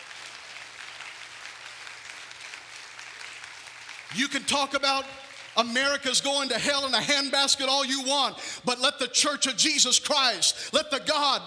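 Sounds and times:
audience hand clapping in praise: 0.0s - 6.5s
speech: 4.1s - 11.4s.

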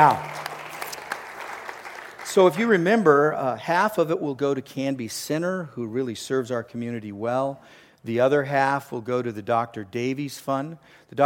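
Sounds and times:
speech: 0.0s - 0.3s, 2.3s - 11.2s
audience applause: 0.0s - 2.8s.

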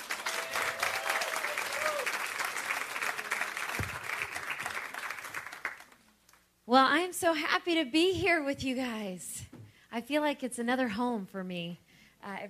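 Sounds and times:
church audience clapping to welcome a speaker: 0.0s - 6.0s
speech: 6.7s - 12.4s.

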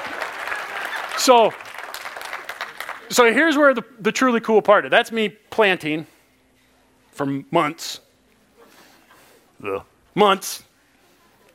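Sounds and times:
audience applause: 0.0s - 3.4s
speech: 1.2s - 1.6s, 3.1s - 6.1s, 7.2s - 8.0s, 9.6s - 10.7s.

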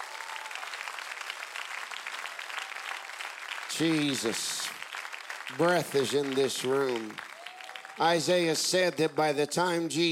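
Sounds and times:
audience clapping: 0.0s - 10.1s
speech: 3.8s - 4.8s, 5.5s - 7.3s, 8.0s - 10.1s.

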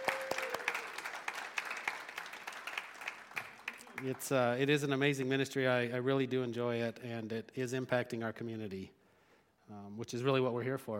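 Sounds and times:
audience applause: 0.0s - 4.4s
speech: 4.0s - 9.0s, 9.7s - 10.9s.

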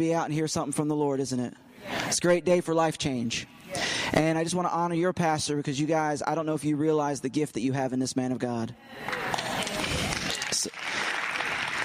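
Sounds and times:
speech: 0.0s - 9.5s
audience clapping: 9.0s - 11.8s.

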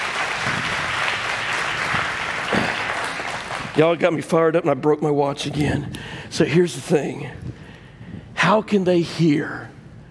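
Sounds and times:
applause: 0.0s - 4.2s
speech: 3.8s - 7.5s, 8.5s - 9.7s.

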